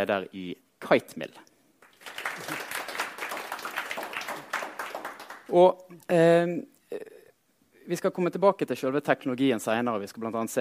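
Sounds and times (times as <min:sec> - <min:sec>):
speech: 0:00.0 - 0:01.5, 0:05.5 - 0:07.2, 0:07.9 - 0:10.5
audience applause: 0:01.8 - 0:05.6.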